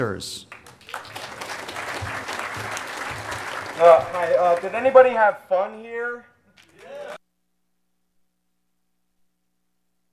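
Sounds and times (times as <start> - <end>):
speech: 0.0 - 1.1, 3.8 - 6.3
audience applause: 0.4 - 5.7, 6.6 - 7.2.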